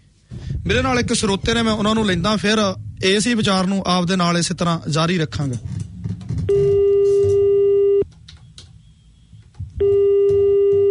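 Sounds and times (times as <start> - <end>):
speech: 0.6 - 5.8
telephone busy tone after a call to a radio studio dropped: 6.5 - 8.0, 9.8 - 10.8.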